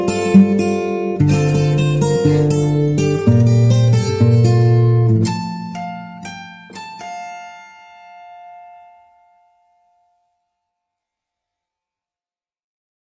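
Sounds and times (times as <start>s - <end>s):
guitar: 0.0s - 10.3s.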